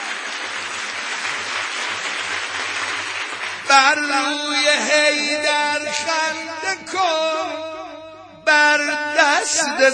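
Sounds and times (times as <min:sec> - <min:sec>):
crowd clapping at a wedding: 0:00.0 - 0:05.0
speech: 0:03.7 - 0:07.8, 0:08.5 - 0:09.9.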